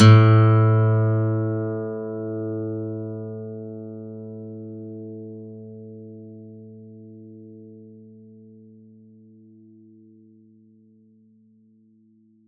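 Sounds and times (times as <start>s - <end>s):
plucked steel string A2: 0.0s - 3.8s.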